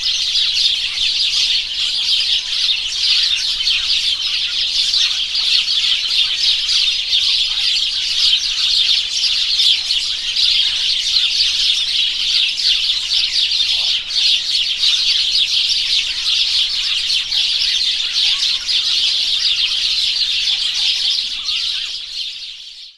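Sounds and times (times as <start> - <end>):
house sparrow Passer domesticus: 0.0 - 22.9.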